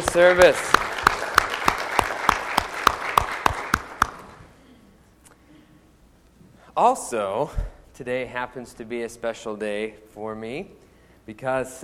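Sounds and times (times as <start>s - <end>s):
audience applause: 0.0s - 4.4s
speech: 0.2s - 0.8s, 6.8s - 11.8s.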